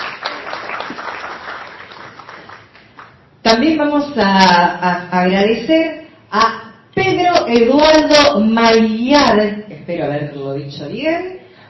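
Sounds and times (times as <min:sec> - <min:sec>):
audience applause: 0:00.0 - 0:03.1
speech: 0:03.4 - 0:06.6, 0:07.5 - 0:11.4.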